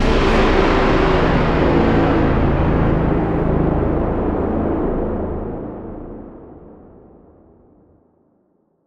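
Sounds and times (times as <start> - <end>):
negative music outro: 0.0 - 5.8.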